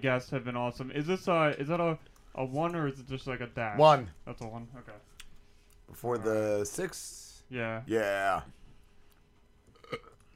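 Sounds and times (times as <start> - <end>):
speech: 0.0 - 5.1, 5.9 - 8.6
small burp: 9.7 - 10.3.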